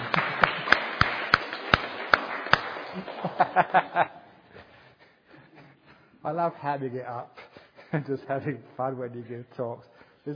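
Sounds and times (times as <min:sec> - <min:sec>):
audience hand claps: 0:00.0 - 0:04.1
people chuckling: 0:02.9 - 0:04.7
speech: 0:03.0 - 0:04.2, 0:06.2 - 0:10.3.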